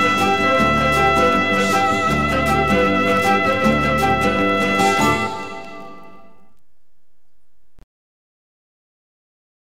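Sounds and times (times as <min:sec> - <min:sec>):
trumpet playing bossa nova: 0:00.0 - 0:06.3.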